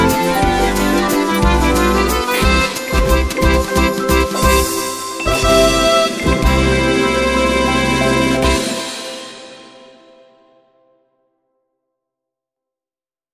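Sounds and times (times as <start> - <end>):
Viennese waltz music: 0.0 - 10.4.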